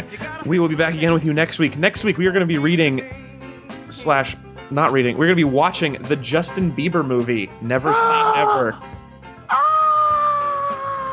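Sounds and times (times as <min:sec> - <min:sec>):
speech: 0:00.1 - 0:03.2, 0:03.9 - 0:09.0
excited scream: 0:07.8 - 0:08.8, 0:09.5 - 0:11.1.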